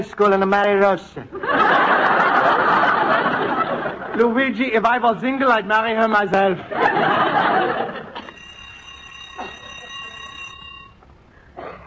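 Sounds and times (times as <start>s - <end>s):
speech: 0.1s - 2.1s, 4.2s - 8.0s
laughter: 1.3s - 4.6s, 6.6s - 8.4s
school bell ringing end of class: 7.4s - 11.0s.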